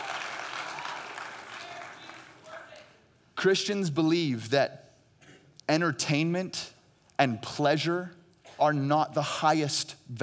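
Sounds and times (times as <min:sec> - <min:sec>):
audience applause: 0:00.0 - 0:02.8
speech: 0:03.4 - 0:04.8, 0:05.7 - 0:10.2.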